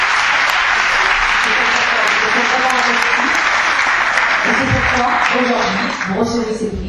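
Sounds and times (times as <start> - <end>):
audience applause: 0.0 - 6.6
speech: 5.0 - 6.8.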